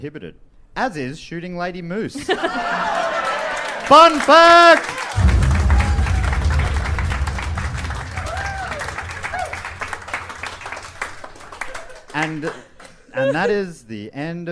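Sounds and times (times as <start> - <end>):
speech: 0.0 - 3.0, 3.9 - 5.3, 12.2 - 14.5
laughter: 2.2 - 3.8
round of applause: 2.7 - 13.0.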